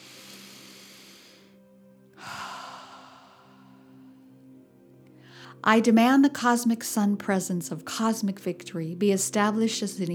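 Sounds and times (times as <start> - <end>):
deep breath: 0.0 - 4.4, 5.2 - 5.6
speech: 5.4 - 10.1.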